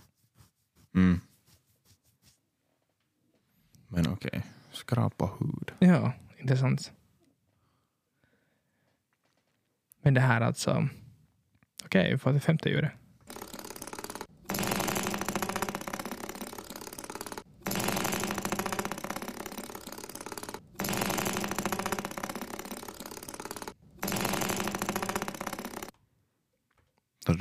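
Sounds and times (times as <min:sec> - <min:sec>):
speech: 0:01.0 - 0:01.3, 0:04.2 - 0:07.0, 0:10.1 - 0:11.0, 0:11.9 - 0:13.4
old dirty tractor engine running: 0:13.3 - 0:25.9.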